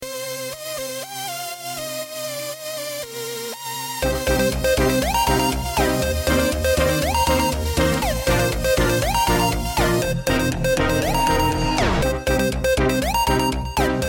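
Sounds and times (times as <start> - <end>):
hip hop music: 0.0 - 14.0.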